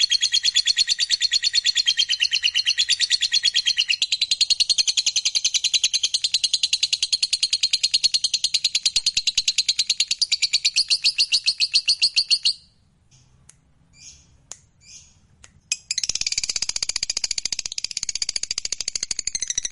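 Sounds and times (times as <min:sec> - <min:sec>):
lovebird song: 0:00.0 - 0:12.7, 0:13.9 - 0:16.7.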